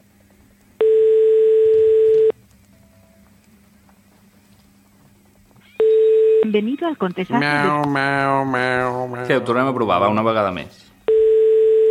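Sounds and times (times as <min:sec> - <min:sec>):
telephone tone when a call is picked up: 0:00.8 - 0:03.2, 0:05.7 - 0:06.6, 0:11.1 - 0:11.9
speech: 0:06.5 - 0:10.9.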